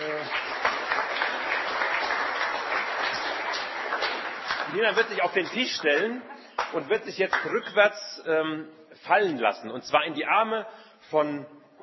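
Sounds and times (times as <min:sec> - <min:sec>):
audience applause: 0:00.0 - 0:07.6
speech: 0:04.7 - 0:11.6.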